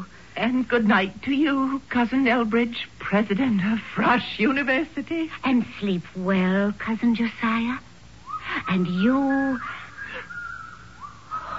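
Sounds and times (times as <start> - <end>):
speech: 0.0 - 7.9, 8.5 - 9.8
eerie whistling: 8.2 - 11.5.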